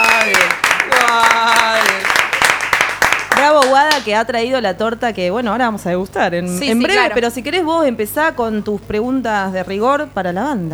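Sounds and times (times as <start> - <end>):
applause: 0.0 - 4.1
speech: 4.0 - 10.7.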